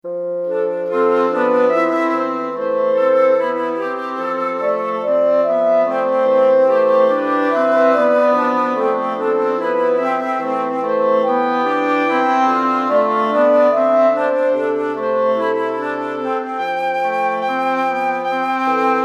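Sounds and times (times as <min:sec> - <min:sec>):
clarinet: 0:00.0 - 0:19.0.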